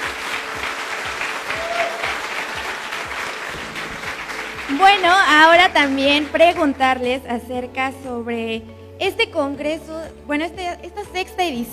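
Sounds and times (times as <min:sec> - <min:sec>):
audience applause: 0:00.0 - 0:06.8
speech: 0:04.8 - 0:11.7.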